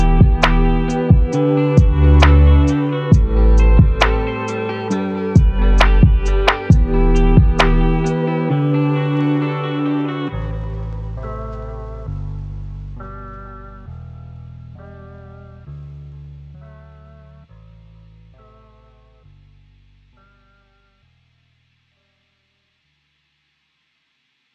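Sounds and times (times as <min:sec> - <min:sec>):
lo-fi music: 0:00.0 - 0:17.4.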